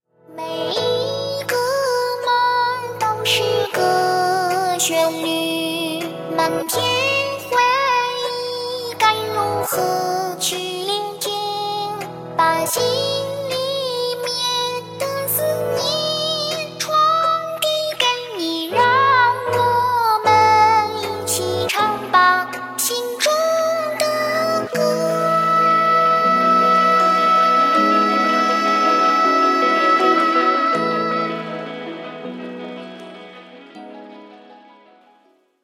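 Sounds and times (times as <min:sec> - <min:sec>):
background music: 0:00.2 - 0:35.6.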